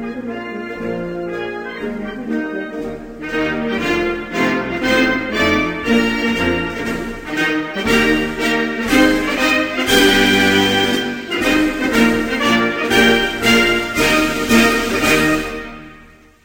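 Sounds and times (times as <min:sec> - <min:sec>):
national anthem: 0:00.0 - 0:16.4.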